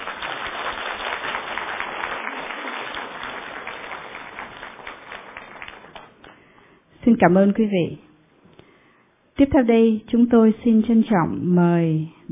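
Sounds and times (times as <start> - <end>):
audience applause: 0.0 - 6.3
speech: 7.1 - 8.1, 9.4 - 12.3.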